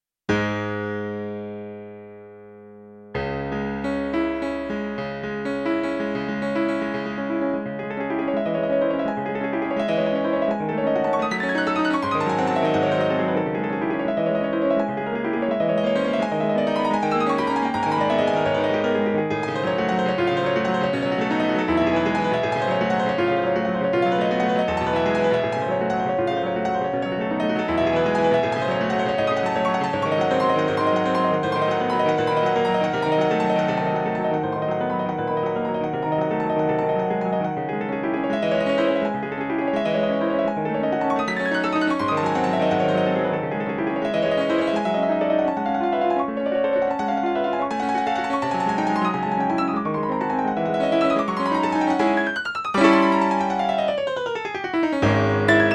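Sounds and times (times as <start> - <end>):
SonicCell GM piano: 0.3 - 55.7.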